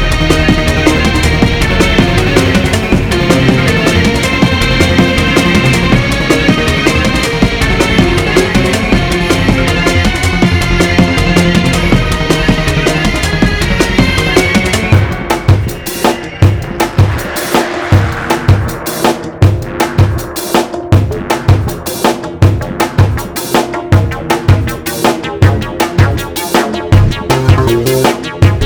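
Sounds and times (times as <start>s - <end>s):
slower invigorating outer space exploration style music: 0.0s - 22.8s, 23.7s - 28.6s.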